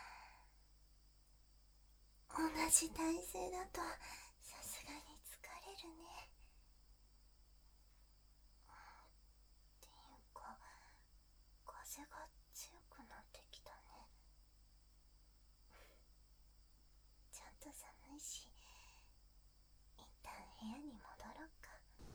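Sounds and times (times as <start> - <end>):
sweet ASMR whispering: 2.3 - 6.4, 9.8 - 11.1, 11.7 - 14.2, 17.3 - 19.1, 20.0 - 22.0.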